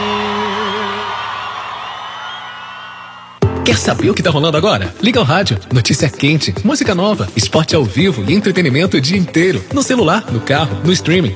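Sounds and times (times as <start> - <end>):
crowd cheering: 0.0 - 3.4
high wavering whoop: 0.0 - 3.4
speech: 3.7 - 11.3.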